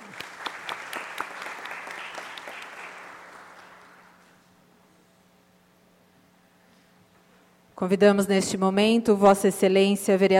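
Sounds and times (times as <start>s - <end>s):
applause: 0.0s - 4.2s
speech: 7.8s - 10.3s.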